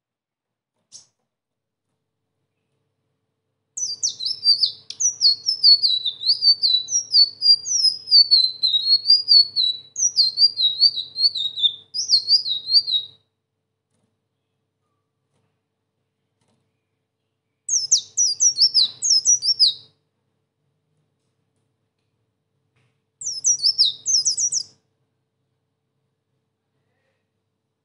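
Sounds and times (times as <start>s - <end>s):
sunbird singing a high-pitched twittering song: 3.8s - 13.1s, 17.7s - 19.8s, 23.2s - 24.7s.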